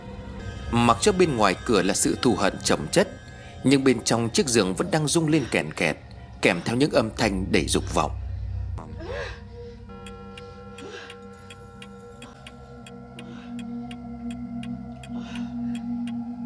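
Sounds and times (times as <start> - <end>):
speech: 0.7 - 8.2
clock ticking in a room: 9.9 - 16.4.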